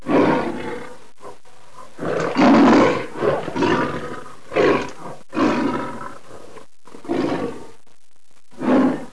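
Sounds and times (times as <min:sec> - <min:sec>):
lion roaring: 0:00.0 - 0:07.7, 0:08.6 - 0:09.1.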